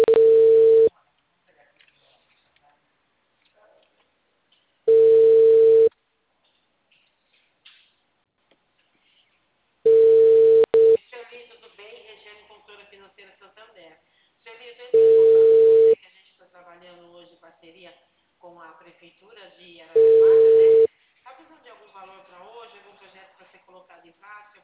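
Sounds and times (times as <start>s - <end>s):
telephone ringback tone while calling someone again: 0.0s - 0.9s, 4.9s - 5.9s, 9.9s - 11.0s, 15.0s - 16.0s, 20.0s - 20.9s.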